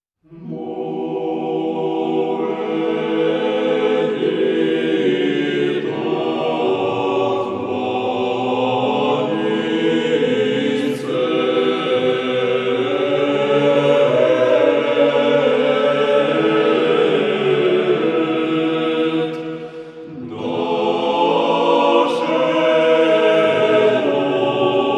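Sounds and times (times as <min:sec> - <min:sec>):
Georgian chant by church choristers: 0:00.2 - 0:24.9.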